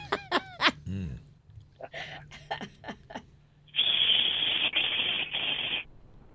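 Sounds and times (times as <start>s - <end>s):
person imitating steam iron: 3.7s - 5.8s.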